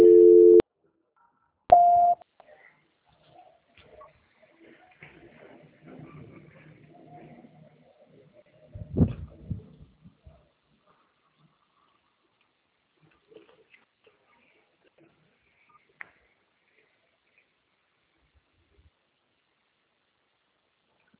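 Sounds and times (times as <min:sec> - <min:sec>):
telephone line beeps during a call transfer: 0:01.7 - 0:02.2.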